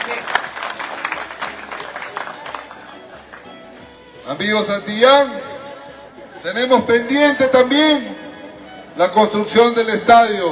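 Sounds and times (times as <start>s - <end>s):
audience clapping: 0.0s - 3.6s
speech: 4.3s - 5.5s, 6.4s - 8.1s, 9.0s - 10.4s.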